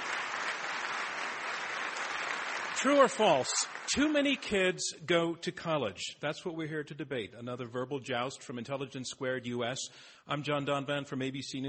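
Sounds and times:
audience applause: 0.0s - 4.6s
speech: 2.8s - 11.6s.

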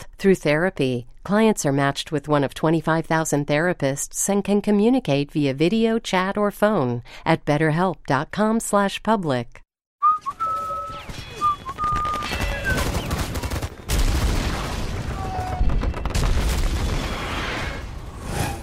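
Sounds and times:
speech: 0.2s - 9.6s
high whistling tones: 10.0s - 13.2s
video game gunfire in a commercial: 10.9s - 17.4s
booming blasts: 12.0s - 18.2s.

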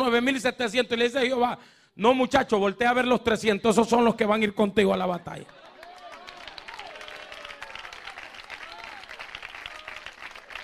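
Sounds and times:
speech: 0.1s - 5.6s
church congregation applauding during a sermon: 5.5s - 10.6s
raised voices and cheers in a church congregation: 5.5s - 10.6s.

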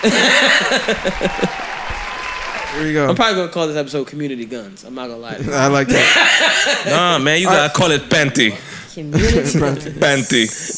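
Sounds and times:
rhythmic chuckling laughter: 0.0s - 1.6s, 5.9s - 7.0s
speech: 0.0s - 1.7s, 2.7s - 10.7s
applause button canned applause sound effect: 0.0s - 3.3s.

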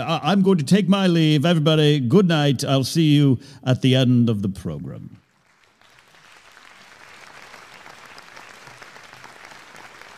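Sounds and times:
speech: 0.0s - 5.2s
audience clapping: 5.2s - 10.1s.

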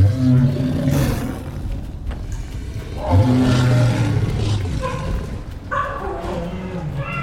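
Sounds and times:
cheetah growling roars: 0.0s - 7.2s
cheetah yipping barks: 4.8s - 7.2s.

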